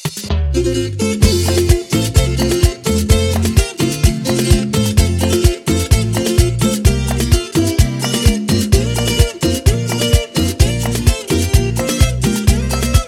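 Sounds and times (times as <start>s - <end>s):
remix intro music at 128 BPM: 0.1s - 13.0s.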